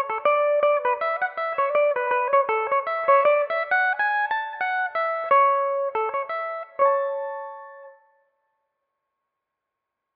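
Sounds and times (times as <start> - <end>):
Irish mandolin in A major: 0.0 - 8.0.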